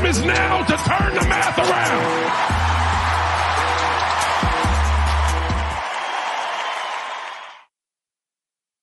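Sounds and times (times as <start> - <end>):
speech: 0.1 - 2.7
warm applause: 1.5 - 7.7.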